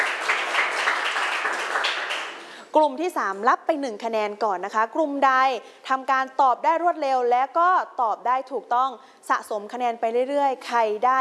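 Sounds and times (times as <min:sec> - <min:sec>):
classroom of students clapping for a correct answer: 0:00.0 - 0:02.6
speech: 0:02.8 - 0:11.1.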